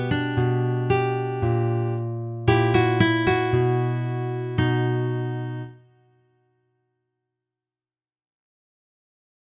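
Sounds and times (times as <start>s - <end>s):
chromatic bass line: 0.0s - 5.7s.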